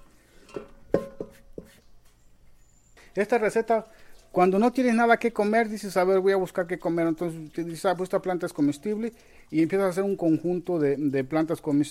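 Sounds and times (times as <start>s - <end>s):
salad ingredients clanking into a metal cooking pot: 0.4s - 1.4s
speech: 3.2s - 11.8s.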